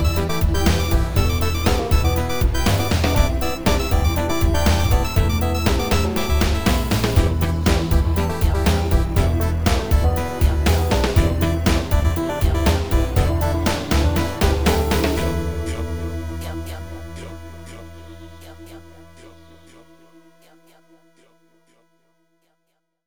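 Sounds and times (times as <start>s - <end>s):
telephone hip hop beat: 0.0s - 16.9s.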